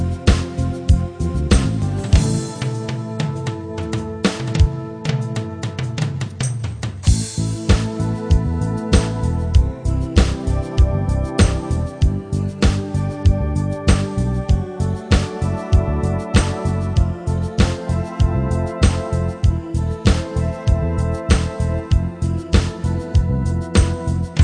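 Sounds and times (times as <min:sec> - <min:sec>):
rock metal full backing band playing long notes: 0:00.0 - 0:06.1, 0:07.1 - 0:24.4.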